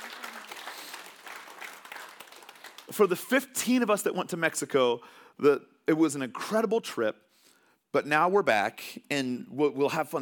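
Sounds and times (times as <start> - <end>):
audience applause: 0.0 - 2.9
speech: 2.9 - 7.3, 7.9 - 10.2.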